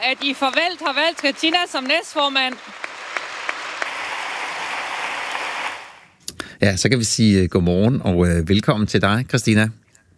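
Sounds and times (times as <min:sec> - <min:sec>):
speech: 0:00.0 - 0:02.8, 0:06.6 - 0:09.8
crowd applause at party meeting: 0:00.0 - 0:06.1.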